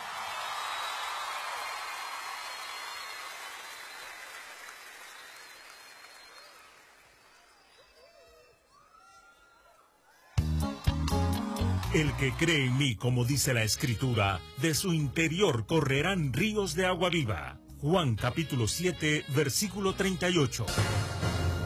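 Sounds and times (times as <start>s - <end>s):
audience applause: 0.0s - 8.3s, 10.4s - 13.1s
speech: 11.9s - 21.0s.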